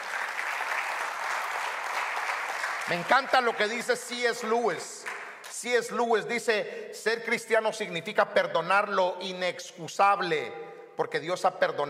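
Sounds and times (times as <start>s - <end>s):
audience applause: 0.0s - 5.3s
speech: 2.9s - 5.0s, 5.6s - 11.8s.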